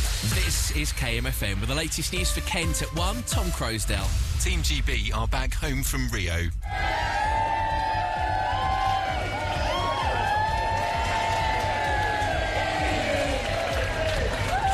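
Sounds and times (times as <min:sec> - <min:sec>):
speech: 0:00.2 - 0:07.2
crowd of friends and family cheering Team GB's return at Heathrow airport: 0:06.6 - 0:14.7.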